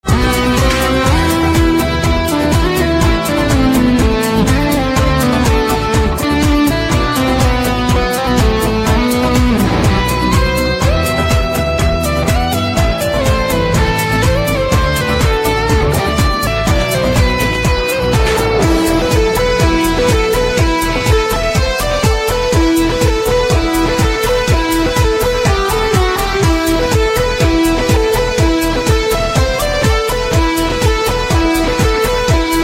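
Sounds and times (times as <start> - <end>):
electric guitar: 0.0 - 32.6.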